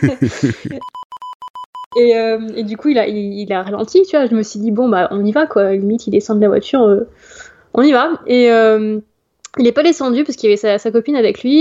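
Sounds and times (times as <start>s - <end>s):
laughter: 0.0s - 0.8s
speech: 0.0s - 1.0s, 2.0s - 11.5s
censorship beep added in editing: 0.6s - 2.1s.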